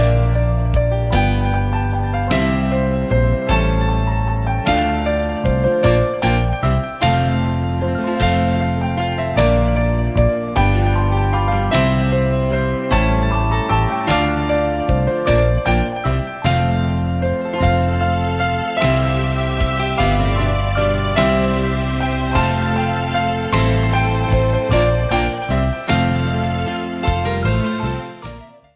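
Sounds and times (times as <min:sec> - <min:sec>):
instrumental Christmas carol: 0:00.2 - 0:28.7.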